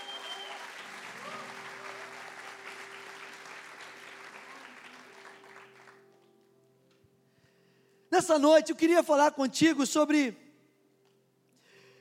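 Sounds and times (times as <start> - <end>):
audience applause: 0.0 - 6.2
speech: 8.2 - 10.4.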